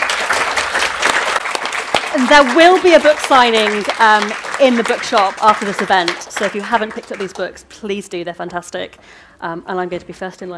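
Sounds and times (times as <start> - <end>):
audience applause: 0.0 - 7.5
speech: 2.2 - 10.5.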